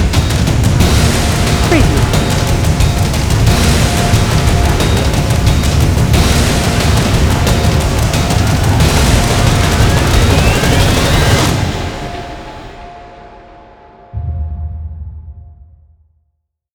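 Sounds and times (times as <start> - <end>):
mechanical rhythmic cinematic action trailer drums: 0.0 - 13.6, 14.2 - 16.1.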